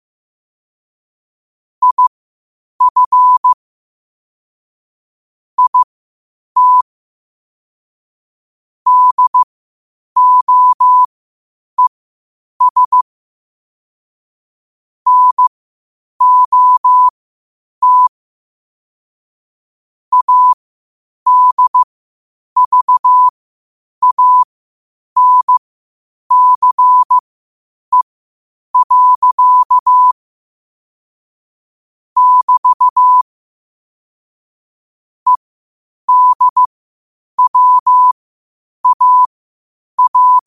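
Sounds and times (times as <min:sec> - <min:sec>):
morse code at 5 wpm: 0:01.8 - 0:02.1, 0:02.8 - 0:03.6, 0:05.6 - 0:05.9, 0:06.6 - 0:06.8, 0:08.9 - 0:09.5, 0:10.2 - 0:11.1, 0:12.6 - 0:13.0, 0:15.1 - 0:15.4, 0:16.2 - 0:17.1, 0:17.8 - 0:18.1, 0:20.1 - 0:20.6, 0:21.3 - 0:21.9, 0:22.6 - 0:23.3, 0:24.0 - 0:24.5, 0:25.2 - 0:25.6, 0:26.3 - 0:27.2, 0:28.8 - 0:30.2, 0:32.2 - 0:33.3, 0:36.1 - 0:36.7, 0:37.4 - 0:38.2, 0:38.8 - 0:39.3, 0:40.0 - 0:40.4.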